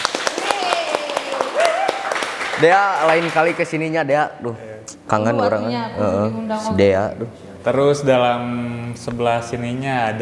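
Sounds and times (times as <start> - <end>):
audience applause: 0.0 - 3.7
speech: 2.6 - 10.2.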